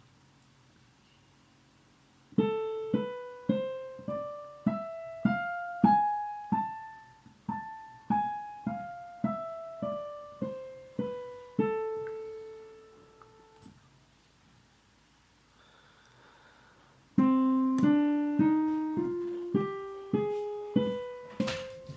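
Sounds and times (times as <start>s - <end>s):
minor scales exercises: 2.4s - 13.7s, 17.1s - 21.9s.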